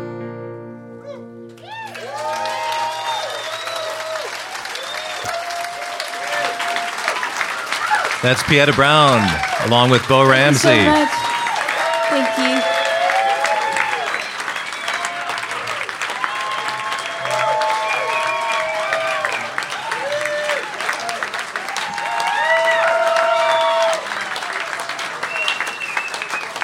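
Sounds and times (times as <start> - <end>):
audience whoops and whistles: 1.6 - 5.7, 13.2 - 15.4, 17.2 - 19.5, 25.2 - 26.6
audience standing ovation at the Des Moines Social Club: 1.6 - 26.6
speech: 8.2 - 11.2.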